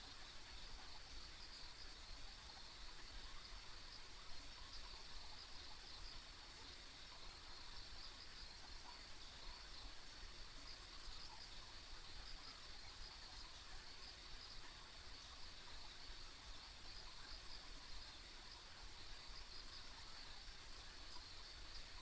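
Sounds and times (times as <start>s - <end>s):
insects chirping on a country road: 0.0s - 22.0s.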